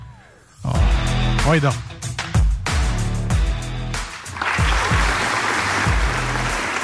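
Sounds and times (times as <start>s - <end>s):
music with a steady thumping low beat: 0.8s - 6.8s
speech: 1.5s - 1.9s
crowd applause sound effect: 4.1s - 6.8s.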